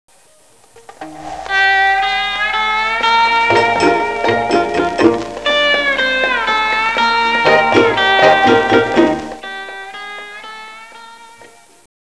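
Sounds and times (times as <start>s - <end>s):
instrumental music: 0.2s - 11.9s.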